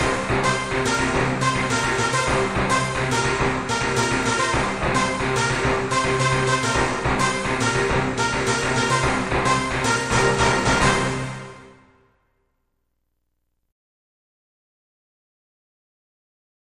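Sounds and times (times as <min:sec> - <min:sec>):
rhythm: 0:00.0 - 0:11.4.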